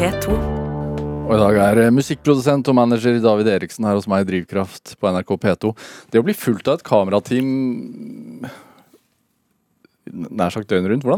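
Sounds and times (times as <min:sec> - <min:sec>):
speech: 0:00.0 - 0:00.5, 0:01.3 - 0:08.7, 0:10.1 - 0:11.1
heavy breathing: 0:08.3 - 0:09.0.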